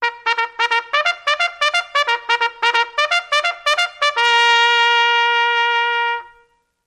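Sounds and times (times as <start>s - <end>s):
long trumpet charge call: 0.0s - 6.6s.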